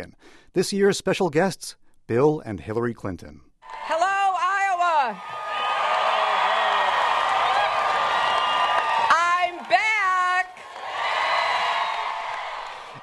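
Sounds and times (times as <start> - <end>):
speech: 0.0 - 4.0
enthusiastic crowd cheering: 3.6 - 13.0.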